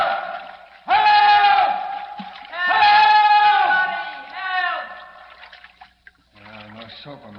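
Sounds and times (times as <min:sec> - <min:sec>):
two voices shouting echoing off concrete walls: 0:00.0 - 0:05.2.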